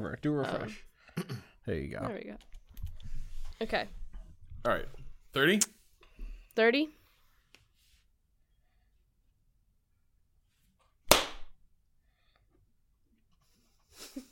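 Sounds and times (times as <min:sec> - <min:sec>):
speech: 0:00.0 - 0:02.6, 0:03.6 - 0:04.0, 0:04.6 - 0:05.8, 0:06.6 - 0:07.0
hand clap: 0:11.1 - 0:11.6.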